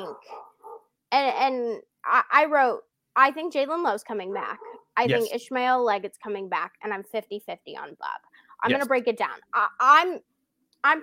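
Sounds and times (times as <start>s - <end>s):
dog guarding the house barking: 0.0s - 0.9s, 4.3s - 4.9s
speech: 0.0s - 11.0s.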